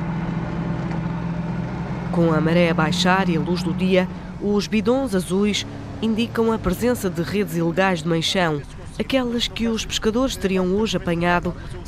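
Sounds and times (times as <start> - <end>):
jet ski engine running on water: 0.0 - 9.0
speech: 2.1 - 11.8.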